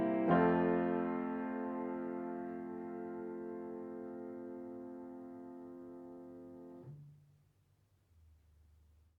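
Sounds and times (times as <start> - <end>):
piano prelude: 0.0 - 6.8.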